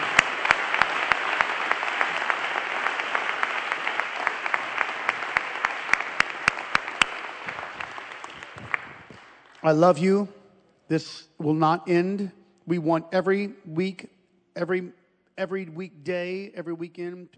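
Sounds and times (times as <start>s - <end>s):
crowd clapping: 0.0s - 9.9s
speech: 9.6s - 17.3s.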